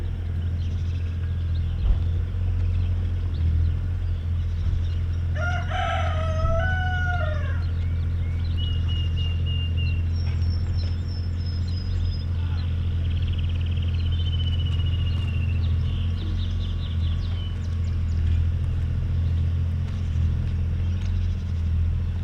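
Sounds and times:
heavy low mechanical rumble: 0:00.0 - 0:22.2
small birds chirping and whistling: 0:00.0 - 0:22.2
rooster crowing: 0:05.3 - 0:07.8.

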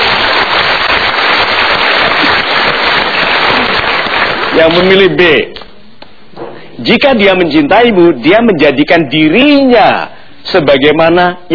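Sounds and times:
audience applause: 0:00.0 - 0:05.1
speech: 0:04.6 - 0:05.6, 0:06.8 - 0:11.5.

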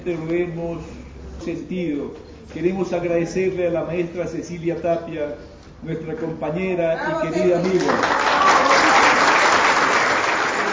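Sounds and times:
speech: 0:00.0 - 0:08.2
concert audience applause after a chamber orchestra performance: 0:07.8 - 0:10.7.

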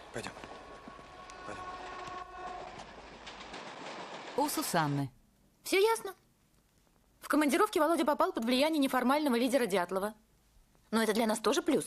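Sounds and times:
train carriage clacks and knocks: 0:00.0 - 0:05.1
moving train carriage rumble: 0:00.0 - 0:05.2
speech: 0:00.1 - 0:00.4, 0:04.4 - 0:06.2, 0:07.3 - 0:10.2, 0:10.9 - 0:11.8.

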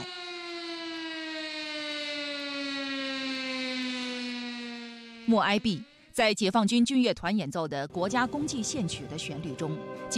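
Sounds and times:
air raid siren: 0:00.0 - 0:06.4, 0:08.5 - 0:10.1
speech: 0:05.3 - 0:10.1.

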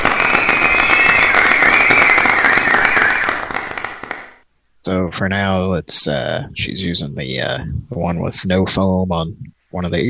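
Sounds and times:
audience applause: 0:00.0 - 0:04.4
speech: 0:04.8 - 0:10.0.

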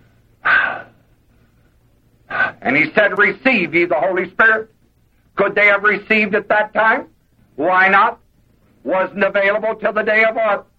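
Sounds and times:
voice imitating breathing out onto someone: 0:00.4 - 0:01.0
speech: 0:02.6 - 0:04.8, 0:05.4 - 0:08.2, 0:08.8 - 0:10.7.

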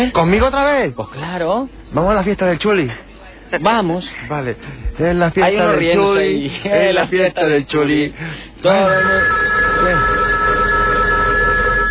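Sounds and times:
speech: 0:00.0 - 0:10.1
telephone ringing with a high electronic tone: 0:08.7 - 0:11.8.

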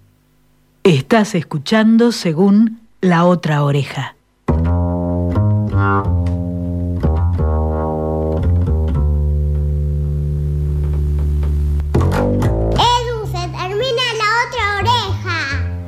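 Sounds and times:
speech: 0:00.8 - 0:04.2
double bass playing: 0:04.5 - 0:13.8, 0:14.6 - 0:15.8.

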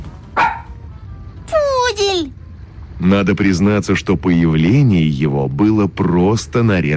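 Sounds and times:
poodle yapping behind a door: 0:00.4 - 0:00.7
speech: 0:03.0 - 0:06.9.

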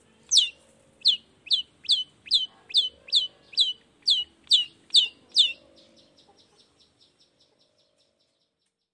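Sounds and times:
long-tailed shrike calls: 0:00.3 - 0:05.6.

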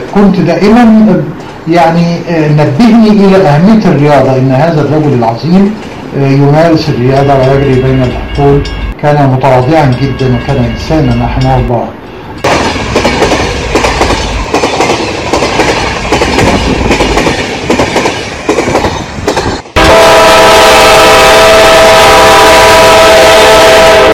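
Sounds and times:
speech: 0:00.1 - 0:12.1
train arriving at Cairo station: 0:07.1 - 0:11.8, 0:12.4 - 0:20.0
train horn: 0:19.8 - 0:24.1.

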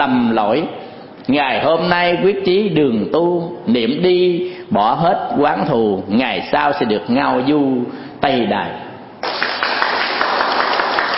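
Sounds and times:
speech: 0:00.0 - 0:08.8
Buddhist audience applause at the end of a dharma talk: 0:09.2 - 0:11.1.

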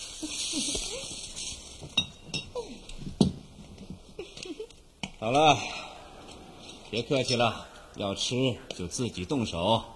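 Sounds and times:
steady hiss: 0:00.0 - 0:09.9
dishes and glass clinking as cans are opened for supper: 0:01.8 - 0:03.4
speech: 0:05.2 - 0:05.8, 0:06.9 - 0:09.9.

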